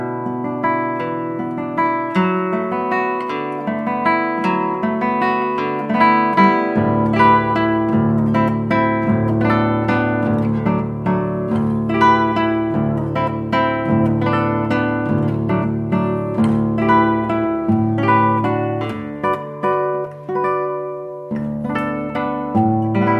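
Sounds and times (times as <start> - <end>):
guitar waltz: 0.0 - 23.1.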